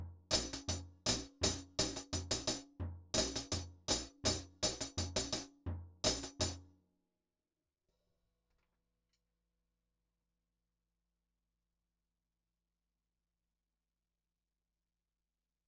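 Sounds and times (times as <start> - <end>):
hi-hat: 0.3 - 2.6, 3.2 - 5.5, 6.1 - 6.6.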